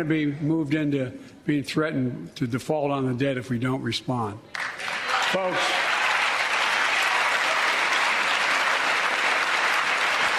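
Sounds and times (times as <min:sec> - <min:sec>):
speech: 0:00.0 - 0:05.8
audience applauding: 0:04.5 - 0:10.3.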